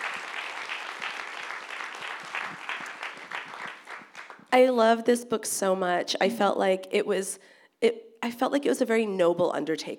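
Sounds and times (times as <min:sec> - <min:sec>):
audience clapping: 0:00.0 - 0:04.5
speech: 0:04.5 - 0:09.9.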